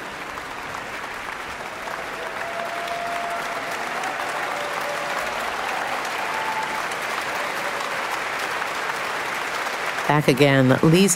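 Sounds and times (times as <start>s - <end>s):
large concert audience applause, standing ovation: 0.0s - 11.1s
faint whistle or cheer: 2.2s - 8.0s
speech: 10.1s - 11.1s.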